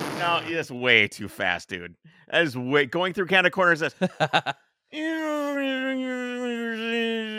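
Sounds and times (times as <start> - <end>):
voice imitating race car engine: 0.1 - 0.5
speech: 0.5 - 7.3
laughter: 3.9 - 4.5.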